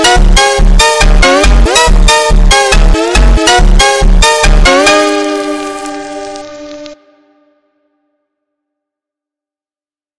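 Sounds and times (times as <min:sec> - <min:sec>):
phonk music: 0:00.0 - 0:07.0.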